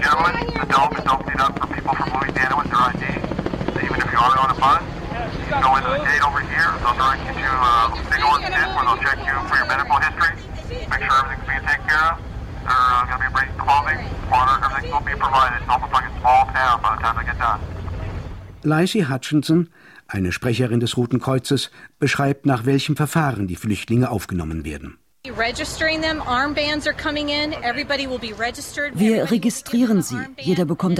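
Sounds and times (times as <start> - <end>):
police giving instructions over loudspeakers: 0.0 - 17.6
helicopters circling over the Astrodome: 0.0 - 18.6, 25.3 - 30.9
speech: 0.2 - 1.5, 18.6 - 30.9.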